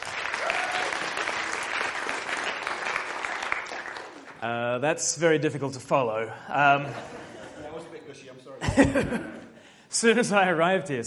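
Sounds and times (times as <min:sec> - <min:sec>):
audience applause welcoming a speaker at a gathering: 0:00.0 - 0:04.4
speech: 0:04.4 - 0:07.2, 0:08.8 - 0:09.4, 0:10.0 - 0:11.0
laughter: 0:06.5 - 0:09.6.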